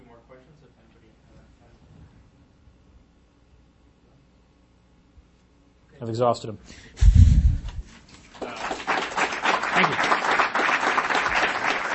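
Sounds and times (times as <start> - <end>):
speech: 6.0 - 7.2
audience clapping: 8.2 - 11.9.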